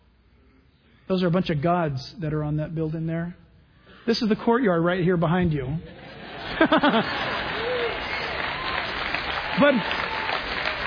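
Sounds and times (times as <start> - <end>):
speech: 1.1 - 3.4, 4.0 - 6.0, 6.6 - 7.3, 9.6 - 10.0
laughter: 5.8 - 8.3
audience clapping: 6.4 - 10.8.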